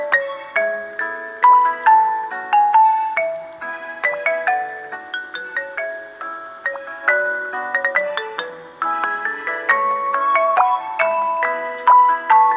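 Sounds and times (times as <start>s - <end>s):
Vivo original phone ringtone: 0.0s - 12.5s.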